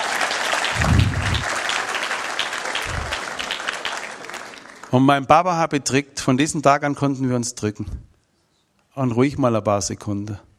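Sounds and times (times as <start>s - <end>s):
crowd applause: 0.0s - 4.9s
low thumping bursts: 0.7s - 1.6s, 2.8s - 3.3s
speech: 4.9s - 8.1s, 9.0s - 10.5s.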